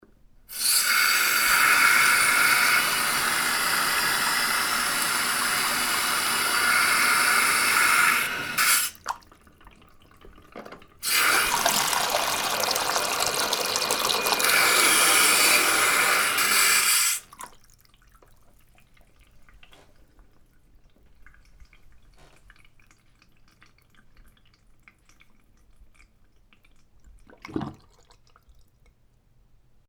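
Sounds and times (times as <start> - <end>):
sink filling: 0.5 - 18.5.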